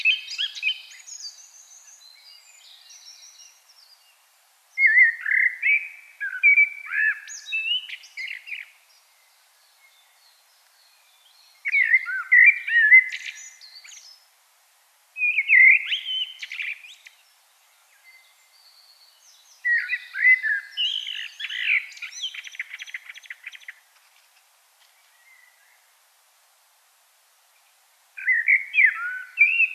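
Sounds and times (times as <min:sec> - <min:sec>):
common blackbird singing: 0:00.0 - 0:04.2, 0:04.8 - 0:14.2, 0:15.2 - 0:23.8, 0:28.2 - 0:29.7.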